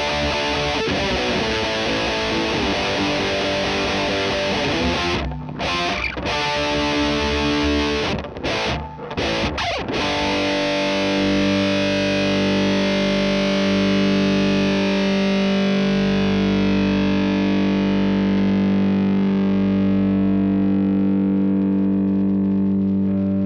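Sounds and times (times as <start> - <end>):
electric guitar: 0.0 - 23.4.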